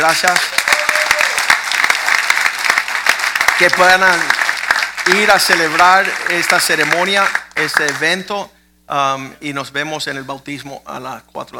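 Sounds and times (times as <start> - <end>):
speech: 0.0 - 0.7, 3.6 - 4.4, 5.0 - 11.5
audience applause: 0.0 - 8.0.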